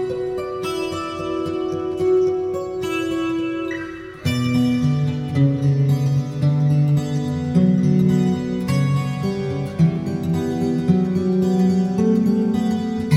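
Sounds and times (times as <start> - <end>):
acoustic etude: 0.0 - 13.1.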